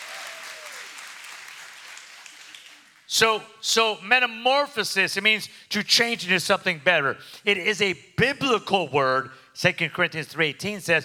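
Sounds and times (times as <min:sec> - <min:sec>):
crowd clapping: 0:00.0 - 0:03.2
speech: 0:03.1 - 0:11.0.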